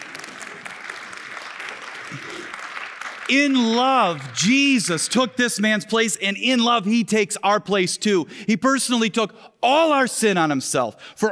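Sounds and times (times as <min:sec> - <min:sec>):
audience clapping: 0:00.0 - 0:06.2
speech: 0:02.1 - 0:02.6, 0:03.3 - 0:11.3.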